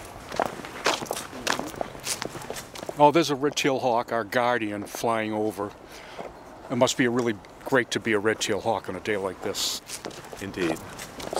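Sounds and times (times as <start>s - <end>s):
footsteps walking down stairs: 0.0s - 3.0s, 9.8s - 11.3s
speech: 3.0s - 6.1s, 6.7s - 11.3s.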